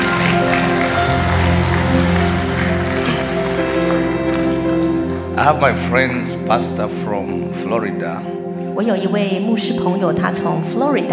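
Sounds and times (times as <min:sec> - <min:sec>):
clapping: 0:00.0 - 0:05.3
speech: 0:05.4 - 0:11.1.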